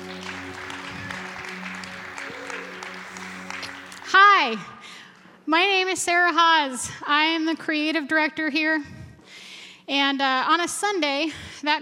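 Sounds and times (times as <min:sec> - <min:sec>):
audience applause: 0:00.0 - 0:04.4
speech: 0:04.4 - 0:04.8, 0:05.5 - 0:09.0, 0:09.9 - 0:11.8.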